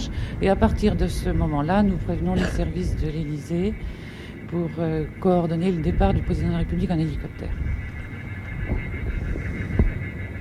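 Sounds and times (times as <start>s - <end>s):
low rumbling background: 0.0s - 10.3s
recorded bird distress calls played to scare birds: 0.0s - 10.3s
speech: 0.4s - 7.8s.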